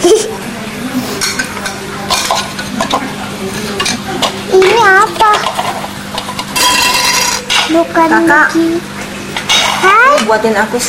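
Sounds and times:
plates and dish lids clattering: 1.2s - 7.8s, 9.4s - 10.4s
speech: 7.9s - 8.9s, 9.8s - 10.8s.

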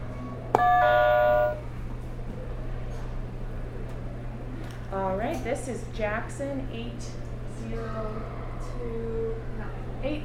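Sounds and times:
low hum: 0.0s - 10.2s
electronic buzzer tone: 0.6s - 1.7s
speech: 4.9s - 10.2s.

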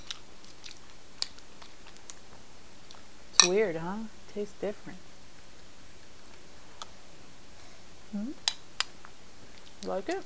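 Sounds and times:
person chewing cornflakes: 0.0s - 2.3s
speech: 3.4s - 5.1s, 8.1s - 8.5s, 9.8s - 10.2s.

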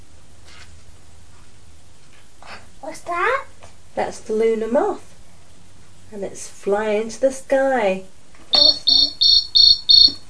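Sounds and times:
speech: 4.0s - 5.1s, 6.1s - 8.2s
loud cricket chirping: 8.5s - 10.2s.

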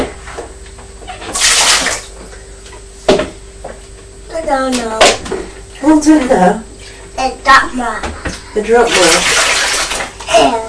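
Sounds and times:
water splashing in a bowl as a child washes: 1.3s - 2.1s, 8.8s - 10.2s
speech: 4.4s - 9.4s, 10.4s - 10.6s.

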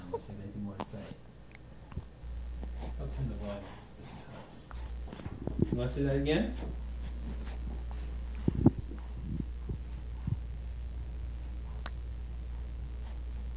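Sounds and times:
low hum: 0.0s - 13.5s
speech: 5.8s - 6.7s
mouth click made with lips pulled to one side: 11.8s - 12.0s.

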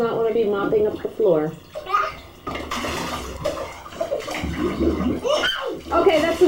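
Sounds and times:
speech: 0.0s - 1.8s, 4.6s - 6.4s
child splashing water in a bath: 1.6s - 6.4s
child's voice: 1.8s - 2.3s.

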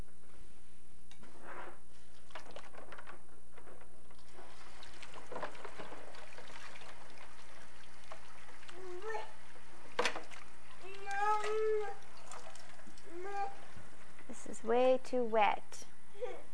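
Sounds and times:
washing dishes with running water: 2.1s - 15.2s
speech: 15.1s - 15.7s.

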